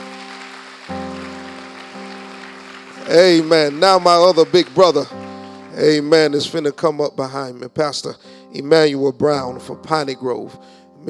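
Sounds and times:
audience clapping hands in praise: 0.0s - 6.6s
sustained low organ chords: 0.9s - 11.0s
speech: 3.1s - 5.2s, 5.8s - 11.0s.

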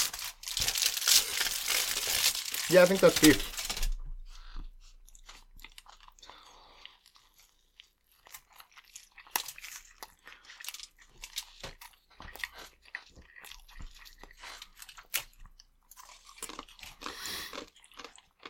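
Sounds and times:
burrito wrapper crinkling: 0.0s - 4.0s
person chewing a burrito: 0.0s - 18.4s
speech: 2.7s - 3.6s.

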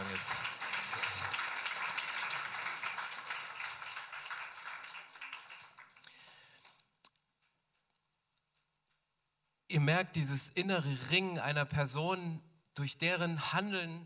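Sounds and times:
crowd applause: 0.0s - 6.7s
speech: 9.7s - 14.0s.

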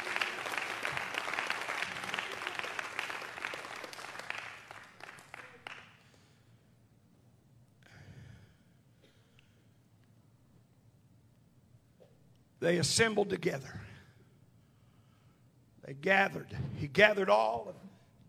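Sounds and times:
audience clapping hands: 0.0s - 6.1s
speech: 12.6s - 13.9s, 16.0s - 18.2s.

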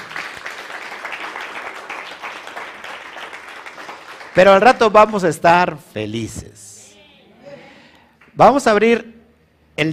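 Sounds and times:
applause: 0.0s - 5.2s
speech: 4.4s - 6.6s, 8.4s - 9.1s, 9.8s - 9.9s.

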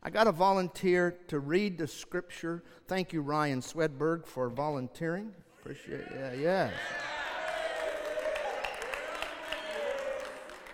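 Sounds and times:
speech: 0.0s - 7.1s
audience cheering: 6.0s - 10.7s
audience clapping: 6.8s - 10.7s.

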